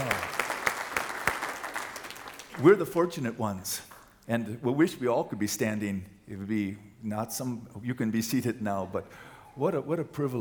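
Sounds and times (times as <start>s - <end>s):
audience applause: 0.0s - 2.9s
speech: 2.6s - 10.4s.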